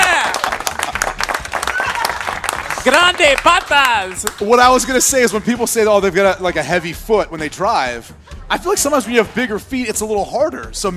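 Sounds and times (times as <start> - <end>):
round of applause: 0.0 - 4.6
speech: 2.9 - 10.9.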